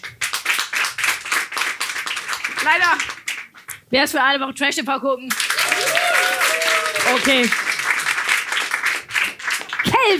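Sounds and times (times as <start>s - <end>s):
group of people clapping: 0.0s - 3.8s, 5.3s - 10.1s
speech: 2.6s - 3.2s, 3.9s - 5.4s, 7.1s - 7.6s.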